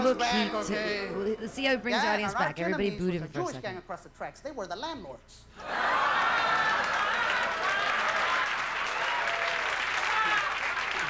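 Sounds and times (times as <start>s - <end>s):
speech: 0.0s - 6.9s
comedy club audience applauding: 5.6s - 11.0s.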